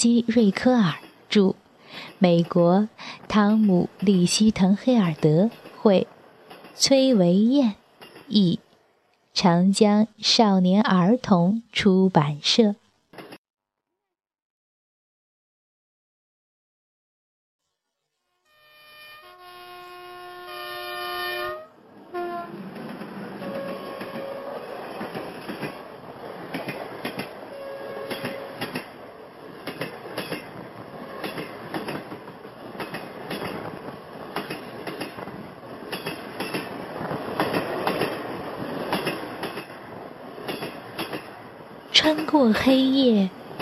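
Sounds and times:
speech: 0.0 - 6.1, 6.8 - 8.6, 9.4 - 12.8, 42.4 - 43.4
train rumbling along the tracks: 0.0 - 8.7, 20.0 - 43.5
train horn: 18.3 - 22.6, 23.4 - 24.7, 27.5 - 28.7.

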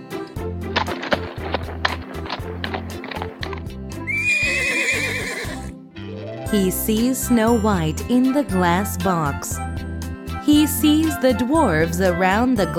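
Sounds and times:
horse hooves clip-clopping: 0.2 - 5.7
horse neighing: 4.0 - 5.7
speech: 6.5 - 9.7, 10.4 - 12.7.

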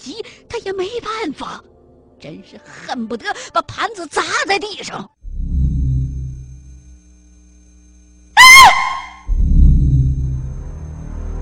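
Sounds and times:
speech: 0.0 - 5.2
low rumbling drone: 5.2 - 7.1, 9.2 - 11.3
woman screaming in a dark tomb: 8.4 - 9.2.

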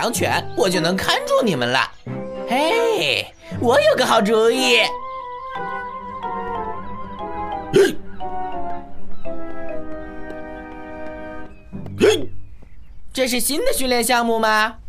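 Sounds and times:
speech: 0.0 - 5.0, 7.7 - 8.0, 13.2 - 14.8
sustained music: 0.0 - 12.1
hiccups: 7.7 - 8.0.

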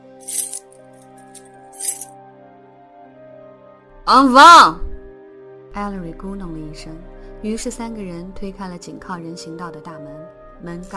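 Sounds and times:
keys jingling as they are taken out: 0.2 - 2.1
speech: 4.1 - 4.8, 5.8 - 10.9.

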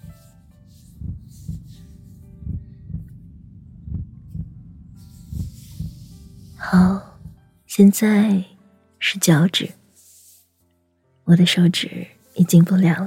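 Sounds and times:
slow heartbeat: 0.0 - 7.6
speech: 6.6 - 7.1, 7.8 - 8.5, 9.1 - 9.8, 11.3 - 13.0.

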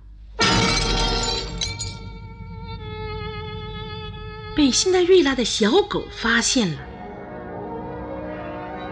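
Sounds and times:
glass clinking: 0.4 - 2.2
speech: 4.6 - 6.9.

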